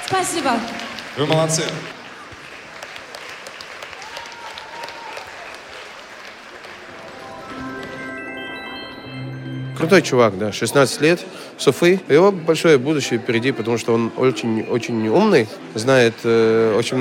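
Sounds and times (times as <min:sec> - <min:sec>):
audience applause: 0:00.0 - 0:09.0, 0:15.3 - 0:16.9
speech: 0:00.1 - 0:02.0, 0:09.8 - 0:16.9.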